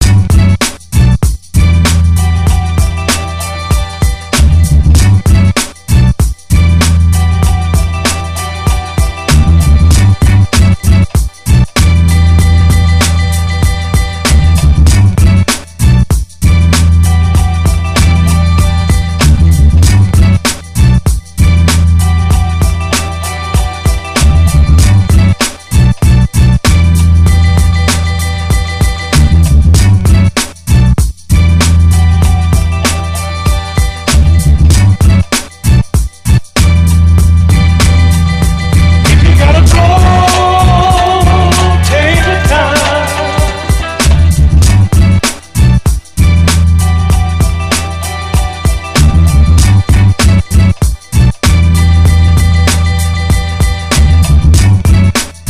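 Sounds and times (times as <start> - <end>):
music beat: 0.0 - 55.4.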